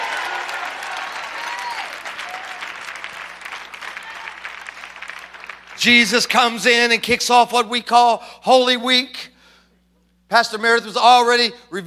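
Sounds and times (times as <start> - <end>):
faint voices and cheers: 0.0 - 2.8, 3.8 - 4.6
crowd clapping: 0.0 - 6.9
speech: 5.8 - 9.3, 10.3 - 11.8.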